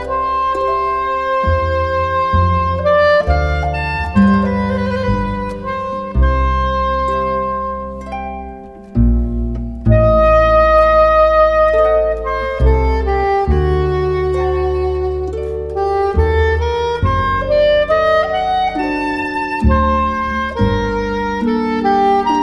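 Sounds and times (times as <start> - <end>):
soprano saxophone: 0.0 - 9.2, 9.8 - 22.4.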